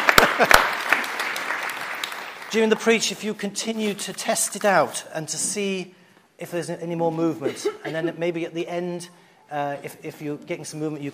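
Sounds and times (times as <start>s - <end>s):
audience applause: 0.0s - 2.8s
speech: 0.2s - 0.7s, 2.5s - 11.1s.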